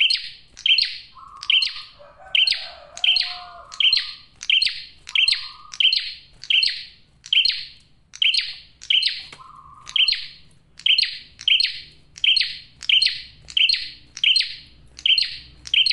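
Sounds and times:
male bar-winged prinia singing bright clipped chirps: 0.0 - 15.9.

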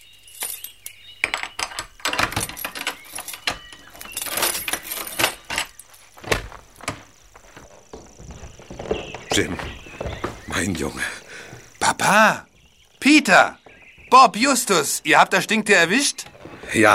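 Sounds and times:
keys jangling against a lock: 0.2 - 6.2
door being unlocked and opened: 1.2 - 10.7, 15.6 - 16.9
speech: 9.4 - 9.8, 10.6 - 11.2, 12.1 - 16.9.

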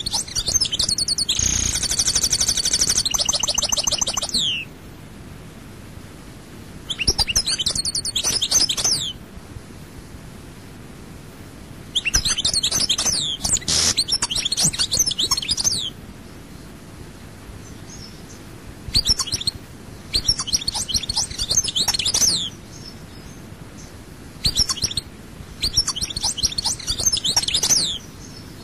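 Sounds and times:
European goldfinch twittering song: 0.0 - 4.7, 6.9 - 9.2, 11.9 - 16.0, 17.6 - 28.6.

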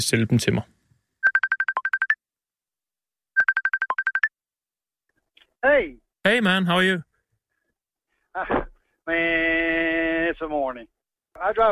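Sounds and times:
speech: 0.0 - 0.8, 5.7 - 7.1, 8.4 - 11.7
telephone call ringing tone: 1.2 - 2.2, 3.4 - 4.3.

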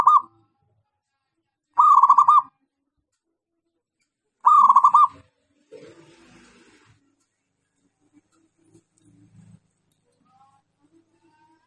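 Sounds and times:
zebra dove cooing: 0.0 - 0.3, 1.8 - 2.5, 4.4 - 5.2.

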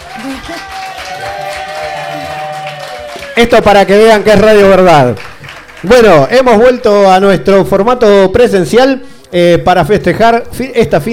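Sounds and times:
live audience applause: 0.0 - 6.3
speech: 0.2 - 0.8, 3.4 - 11.1.

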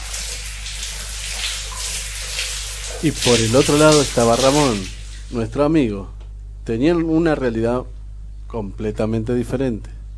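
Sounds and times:
warm water running into a bath: 0.0 - 5.6
speech: 3.0 - 10.0.

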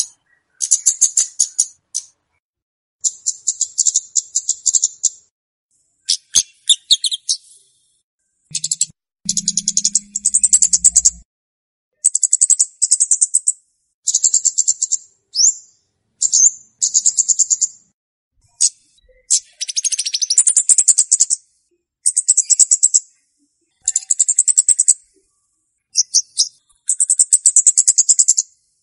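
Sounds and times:
Scarlet-backed flowerpecker song: 0.0 - 2.4, 6.0 - 7.8, 8.5 - 11.3, 11.9 - 28.8.

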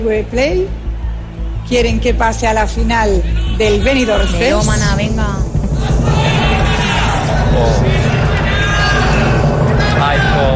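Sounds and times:
speech: 0.0 - 0.8, 1.4 - 5.5, 7.6 - 8.0
large audience at Benidorm Fest 2025 semifinal chanting a contestant's name: 3.2 - 10.5.

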